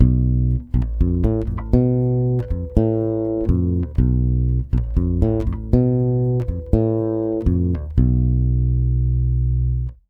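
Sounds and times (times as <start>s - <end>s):
Brazilian bossa bass in B diminished: 0.0s - 10.0s.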